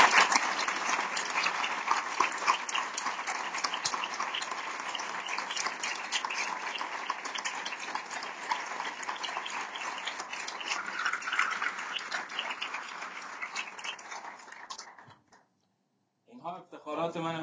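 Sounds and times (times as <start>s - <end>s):
audience applause: 0.0s - 15.1s.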